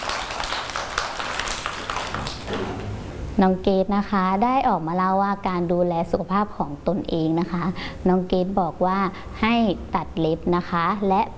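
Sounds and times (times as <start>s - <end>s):
group of children clapping: 0.0s - 2.7s
speech: 3.4s - 11.3s.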